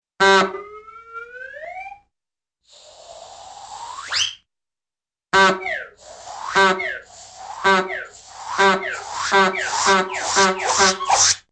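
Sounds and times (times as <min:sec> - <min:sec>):
suction noises: 0:02.7 - 0:04.2, 0:05.9 - 0:11.5
whistles: 0:02.8 - 0:04.5, 0:05.6 - 0:11.4
honking: 0:06.4 - 0:07.0, 0:07.6 - 0:11.1.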